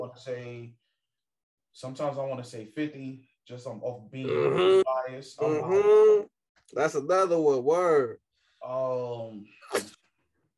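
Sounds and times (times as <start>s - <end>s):
speech: 0.0s - 0.8s, 1.8s - 10.0s
sneeze: 9.6s - 10.0s.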